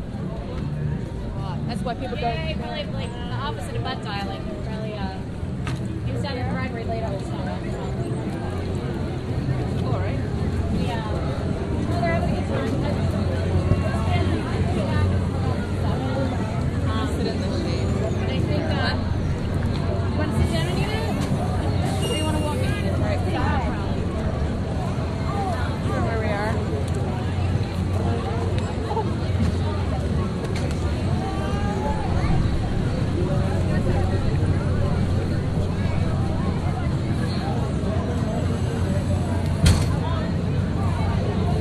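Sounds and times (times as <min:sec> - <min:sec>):
constant low engine-like rumble: 0:00.0 - 0:41.5
crowd babble at the New Jersey State Fair: 0:00.0 - 0:41.5.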